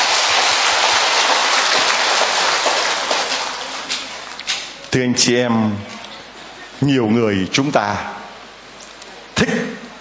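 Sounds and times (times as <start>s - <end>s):
crowd applause: 0.0s - 4.4s
speech: 4.9s - 6.0s, 6.8s - 8.2s.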